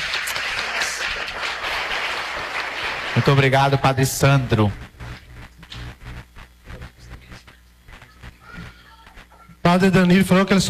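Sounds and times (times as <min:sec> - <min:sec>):
applause: 0:00.0 - 0:04.2
speech: 0:03.2 - 0:04.9, 0:09.8 - 0:10.6.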